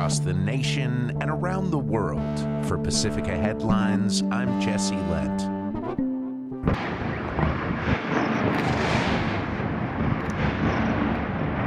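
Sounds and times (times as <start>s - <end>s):
speech: 0.1s - 6.1s, 6.7s - 7.1s
explosions from airstrikes over a city: 6.6s - 11.6s.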